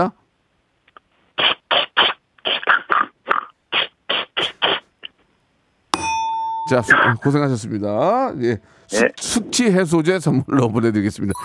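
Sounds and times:
speech: 0:00.0 - 0:00.2, 0:06.7 - 0:11.4
voice imitating spray bottle low on water: 0:01.4 - 0:05.1
bright ringing ding: 0:05.9 - 0:07.7.

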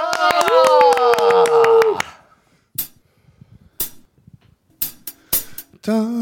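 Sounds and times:
audience clapping: 0:00.0 - 0:02.2
speech: 0:05.8 - 0:06.1.

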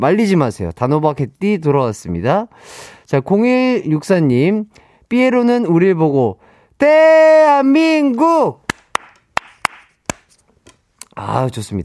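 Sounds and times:
speech: 0:00.0 - 0:08.6, 0:11.2 - 0:11.8
hand clapping: 0:08.6 - 0:10.4.

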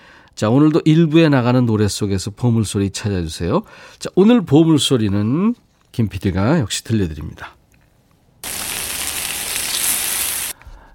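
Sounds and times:
speech: 0:00.4 - 0:07.6
meat sizzling on a grill: 0:08.4 - 0:10.6.

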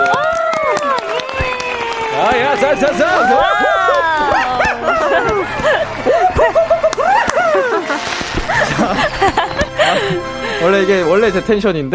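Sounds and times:
excited voices cheering: 0:00.0 - 0:09.1
small group clapping: 0:00.0 - 0:09.8
laughter: 0:00.6 - 0:10.7
speech: 0:02.7 - 0:04.2, 0:09.4 - 0:11.9.

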